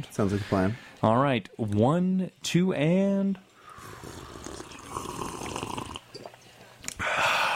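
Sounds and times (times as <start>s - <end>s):
speech: 0.0s - 4.2s
hot coffee slurped from a mug: 3.8s - 6.0s.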